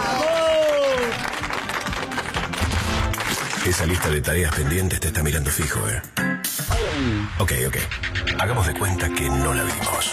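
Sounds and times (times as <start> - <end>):
person cheering: 0.0 - 1.2
audience applause: 0.0 - 4.6
speech: 3.6 - 6.3, 7.0 - 10.1.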